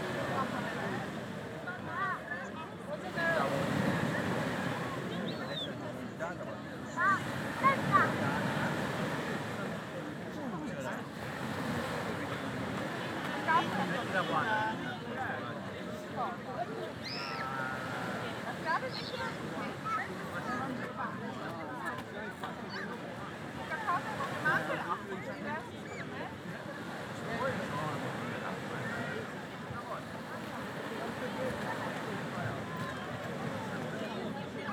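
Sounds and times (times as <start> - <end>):
waves on a beach: 0.0 - 34.7.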